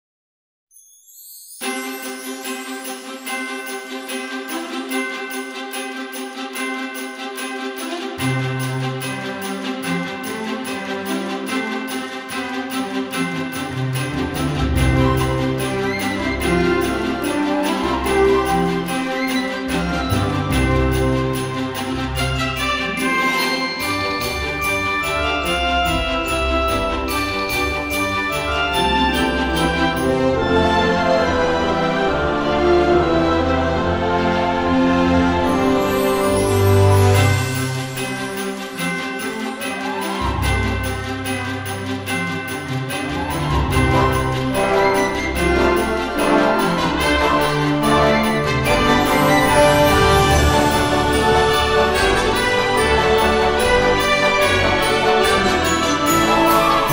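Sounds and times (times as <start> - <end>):
upbeat Christmas background music: 0.7 - 56.9.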